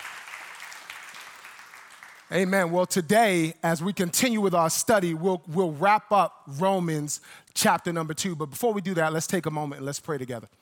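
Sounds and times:
round of applause: 0.0 - 2.6
speech: 2.3 - 10.6.

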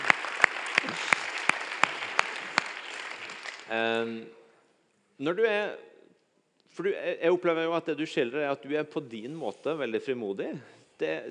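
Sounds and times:
audience applause: 0.0 - 3.8
speech: 3.7 - 4.4, 5.2 - 5.9, 6.7 - 11.2.

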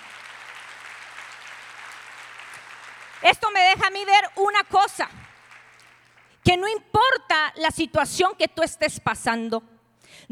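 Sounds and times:
audience applauding: 0.0 - 6.4
speech: 3.2 - 5.2, 6.4 - 10.3.

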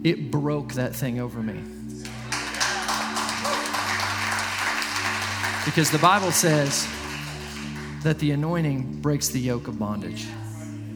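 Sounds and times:
speech: 0.0 - 2.2, 5.6 - 7.0, 8.0 - 10.4
crowd clapping and cheering: 2.0 - 8.7.

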